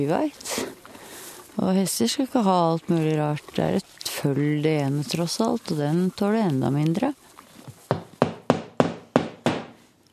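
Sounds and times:
speech: 0.0s - 0.7s, 1.6s - 7.2s
hammering nails to shut a window: 7.9s - 9.8s.

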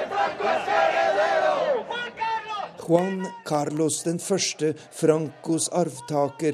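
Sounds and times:
group of demonstrators chanting in central Madrid: 0.0s - 2.8s, 4.2s - 6.5s
speech: 2.9s - 6.5s.

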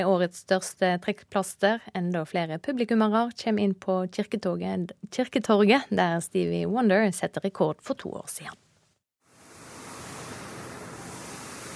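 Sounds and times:
speech: 0.0s - 8.6s
street sweeper machine cleaning sidewalks: 9.4s - 11.7s.

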